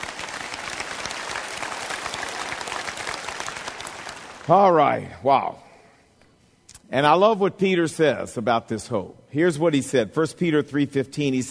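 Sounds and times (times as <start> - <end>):
audience clapping: 0.0 - 4.7
speech: 4.5 - 5.7, 6.9 - 11.4.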